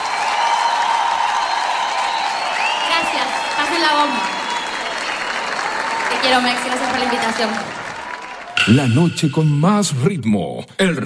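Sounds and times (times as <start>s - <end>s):
applause for a singer at an evening music show: 0.0s - 8.6s
speech: 6.2s - 7.8s, 8.7s - 11.0s
sustained tone: 8.6s - 10.4s.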